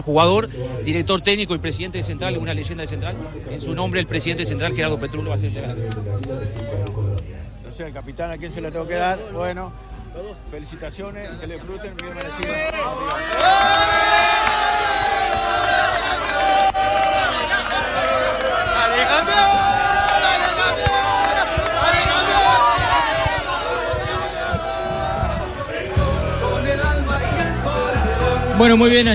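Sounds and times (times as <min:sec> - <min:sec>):
speech: 0:00.0 - 0:07.0, 0:07.8 - 0:14.6, 0:28.6 - 0:29.1
Progreso football fans cheering and chanting: 0:00.0 - 0:29.1.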